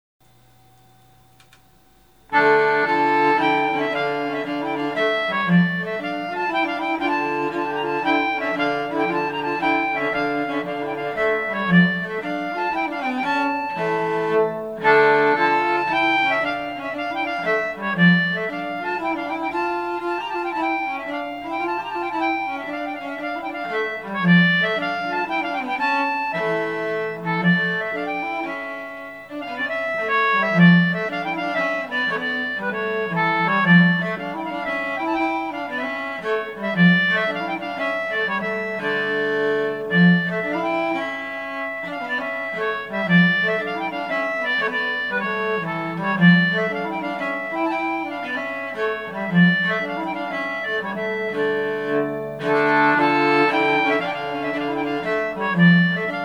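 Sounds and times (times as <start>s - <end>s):
Swedish concertina: 0.2s - 56.2s.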